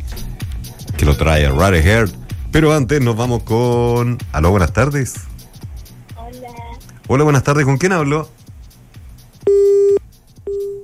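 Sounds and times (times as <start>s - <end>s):
speech: 1.0s - 5.3s, 7.1s - 8.4s
telephone busy tone after a caller hangs up: 9.5s - 10.8s.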